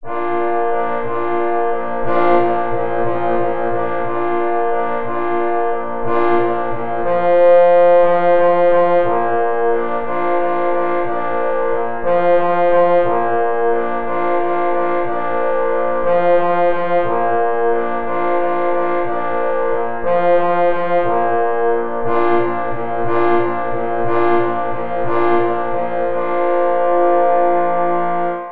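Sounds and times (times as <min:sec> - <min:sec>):
four parforce horns playing a hunting tattoo: 0:00.0 - 0:28.4.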